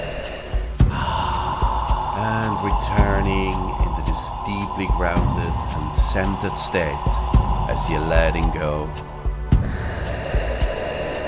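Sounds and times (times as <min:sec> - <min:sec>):
deep breath in during a guided slow calming breathing exercise: 0:00.0 - 0:11.2
speech: 0:02.6 - 0:09.1.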